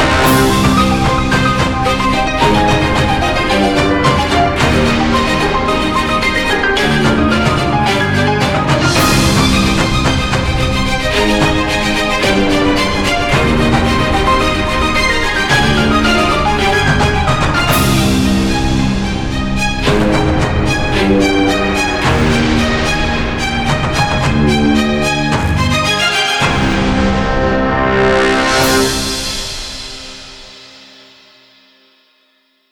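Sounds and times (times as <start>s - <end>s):
epic orchestral music: 0.0s - 31.0s.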